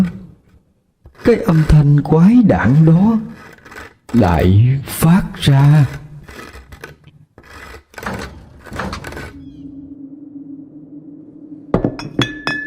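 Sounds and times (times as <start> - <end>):
speech: 1.3 - 3.5, 4.1 - 6.0
icy wind gusting into the room: 8.4 - 12.6.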